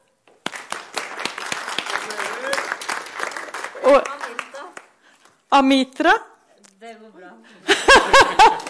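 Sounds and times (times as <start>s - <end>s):
audience applause: 0.4s - 4.7s, 8.4s - 8.6s
speech: 5.5s - 8.6s
laughter: 7.6s - 8.6s.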